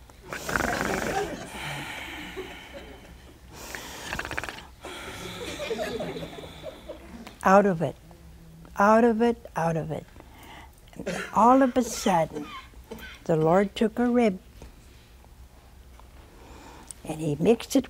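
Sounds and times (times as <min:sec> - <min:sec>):
voice imitating snoring: 0:00.3 - 0:01.4, 0:03.7 - 0:04.7
laughter: 0:00.9 - 0:03.5, 0:05.0 - 0:07.3
speech: 0:07.4 - 0:08.0, 0:08.8 - 0:10.1, 0:11.1 - 0:12.6, 0:13.3 - 0:14.5, 0:17.1 - 0:17.8.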